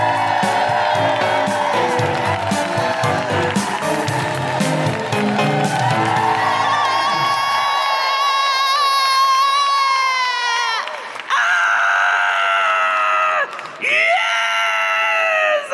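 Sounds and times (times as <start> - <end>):
live comedy show audience cheering and clapping: 0.0 - 15.6.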